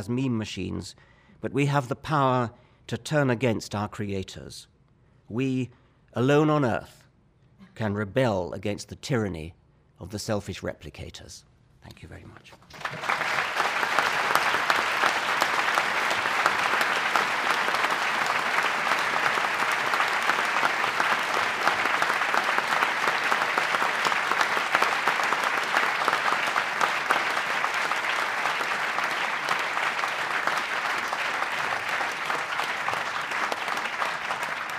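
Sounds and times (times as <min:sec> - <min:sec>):
speech: 0:00.0 - 0:04.7, 0:05.3 - 0:07.0, 0:07.8 - 0:13.5
large audience applause after a lecture: 0:12.7 - 0:34.7.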